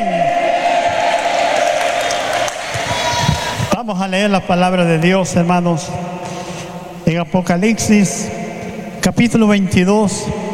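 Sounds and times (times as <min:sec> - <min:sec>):
crowd cheering and whooping: 0:00.0 - 0:03.7
audience applauding: 0:00.6 - 0:03.7
speech: 0:03.9 - 0:06.1, 0:07.1 - 0:08.4, 0:09.1 - 0:10.4.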